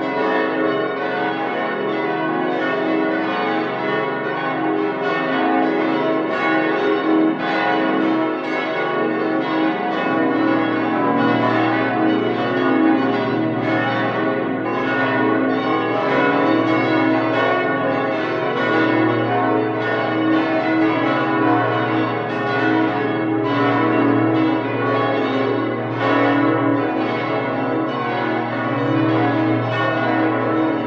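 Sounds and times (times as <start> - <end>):
cathedral bells in full peal for a high feast day: 0.0 - 30.8.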